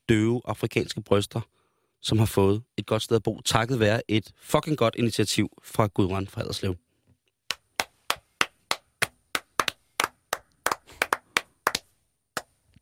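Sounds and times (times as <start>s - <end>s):
speech: 0.1s - 6.8s
person clapping: 7.5s - 12.5s.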